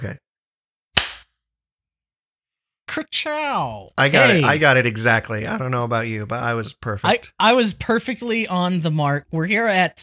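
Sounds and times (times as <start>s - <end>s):
speech: 0.0s - 0.2s, 2.9s - 10.0s
hand clap for syncing recordings: 1.0s - 1.3s.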